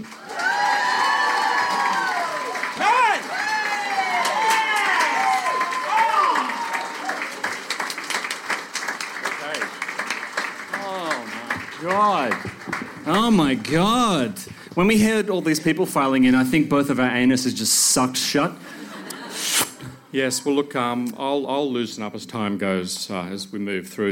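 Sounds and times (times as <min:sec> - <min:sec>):
live audience applauding and cheering: 0:00.0 - 0:14.9
speech: 0:13.3 - 0:18.8, 0:20.1 - 0:24.0
laughter: 0:18.7 - 0:20.1.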